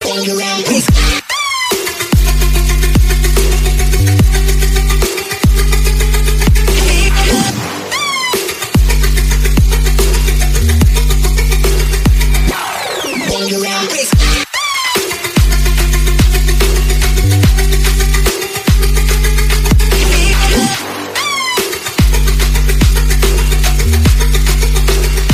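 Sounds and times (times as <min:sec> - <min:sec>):
remix music: 0:00.0 - 0:25.3.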